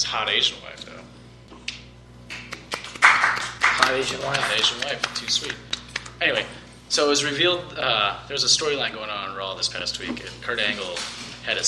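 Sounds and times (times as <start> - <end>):
speech: 0.0 - 1.0, 3.9 - 11.6
soft scattered hand claps: 2.3 - 6.2.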